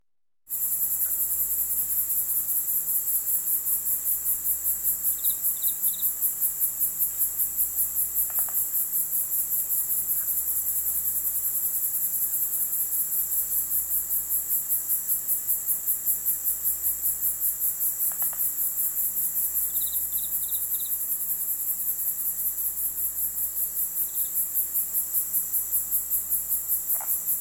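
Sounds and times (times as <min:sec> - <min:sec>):
crickets chirping at night in a residential country area: 0:00.5 - 0:27.4.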